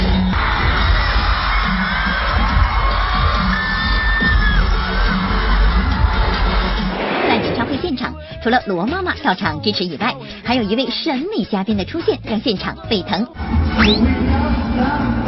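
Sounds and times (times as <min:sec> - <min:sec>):
concert fans screaming and cheering: 0:00.1 - 0:07.8
speech: 0:08.5 - 0:15.1.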